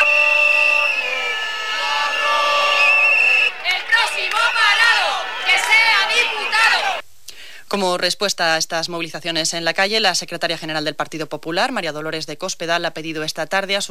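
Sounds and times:
high whistles: 0.0s - 7.0s
protesters shouting slogans: 0.0s - 7.0s
speech: 7.8s - 13.8s.

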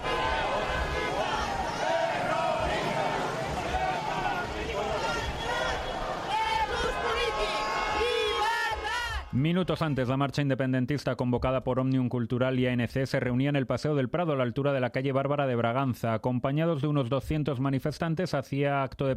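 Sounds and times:
city traffic in Madrid: 0.0s - 9.4s
protesters shouting in Madrid: 0.0s - 10.0s
speech: 9.4s - 19.1s.

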